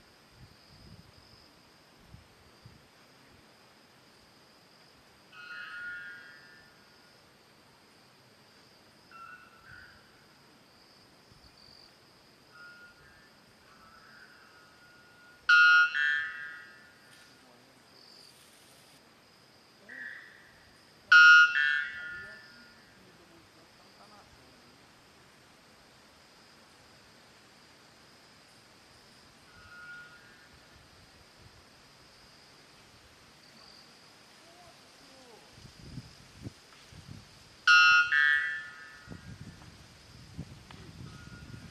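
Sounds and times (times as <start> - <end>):
white bellbird: 5.3 - 6.7, 9.1 - 10.1, 12.5 - 17.2, 21.1 - 22.9, 29.4 - 30.5, 37.7 - 39.4.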